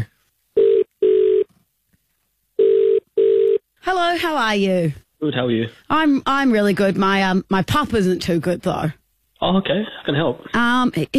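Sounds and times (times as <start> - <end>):
telephone ringback tone on an outgoing call: 0.6 - 1.4, 2.6 - 3.6
speech: 3.9 - 11.1.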